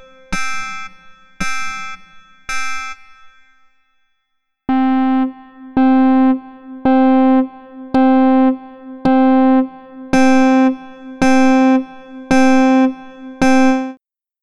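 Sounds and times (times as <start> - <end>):
Synclavier guitar partials: 0.0 - 2.0, 4.7 - 13.9.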